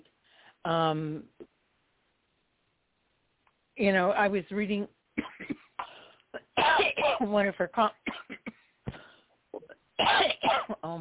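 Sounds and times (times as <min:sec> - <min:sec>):
speech: 0:00.6 - 0:01.5, 0:03.8 - 0:05.3, 0:07.1 - 0:08.4, 0:10.0 - 0:10.9
woman coughing while reading aloud: 0:05.2 - 0:07.3, 0:08.0 - 0:08.6, 0:10.0 - 0:10.8.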